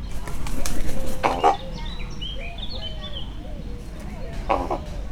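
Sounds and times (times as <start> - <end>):
raven flying past from left to right: 0.2 - 2.1, 3.8 - 5.0.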